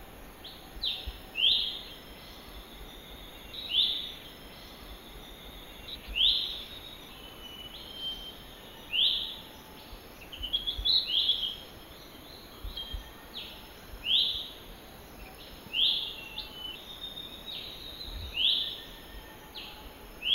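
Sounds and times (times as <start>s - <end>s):
lesser green leafbird giving whistled calls in the wild: 0.4s - 20.3s.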